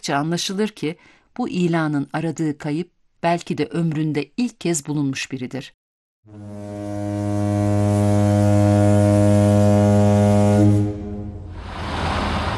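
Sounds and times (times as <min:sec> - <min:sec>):
speech: 0:00.0 - 0:07.1
ferry steam whistle blowing: 0:06.3 - 0:12.3.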